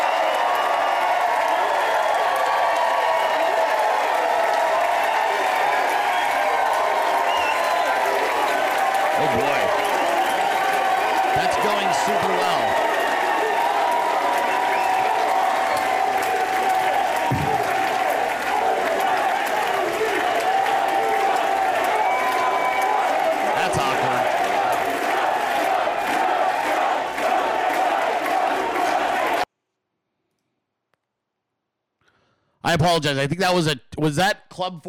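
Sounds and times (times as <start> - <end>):
crowd cheering and applauding at private event: 0.0 - 29.5
speech: 32.7 - 34.8.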